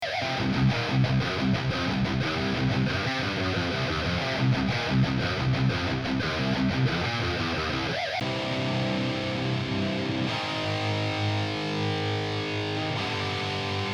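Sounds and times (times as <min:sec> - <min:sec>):
guitars: 0:00.0 - 0:13.9.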